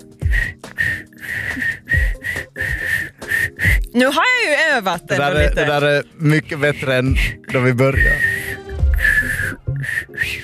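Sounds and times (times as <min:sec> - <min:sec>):
learner practicing whistling: 0:00.2 - 0:03.9, 0:07.9 - 0:10.4
speech: 0:03.9 - 0:08.2.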